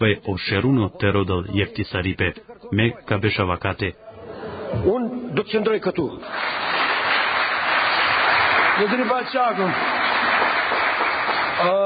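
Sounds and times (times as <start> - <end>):
speech: 0.0 - 4.0, 4.7 - 6.8, 8.8 - 10.3, 11.6 - 11.8
applause from parliament deputies: 6.2 - 11.8.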